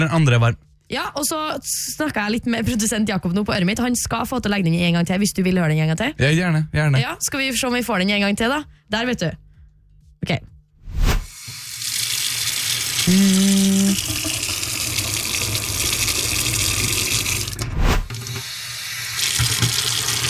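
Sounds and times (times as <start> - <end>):
speech: 0.0 - 9.4, 10.2 - 10.5, 13.1 - 14.4
warm water running from a tap: 11.3 - 20.2.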